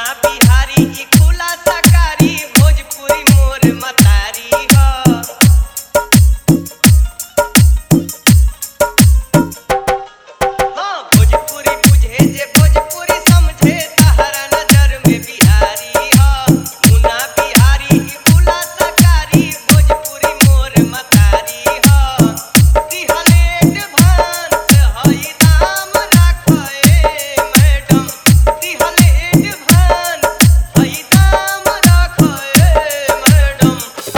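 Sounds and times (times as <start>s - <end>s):
Bhojpuri dholak bass mix: 0.0s - 34.1s.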